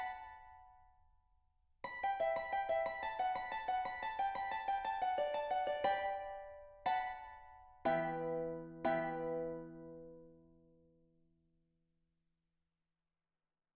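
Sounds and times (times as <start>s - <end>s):
harp: 1.9s - 10.6s.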